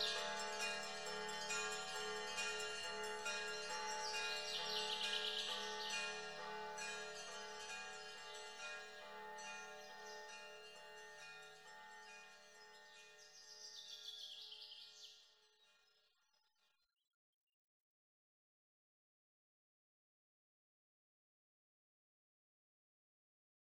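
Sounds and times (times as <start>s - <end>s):
bell-tower bells ringing at the Near Caves: 0.0s - 15.1s.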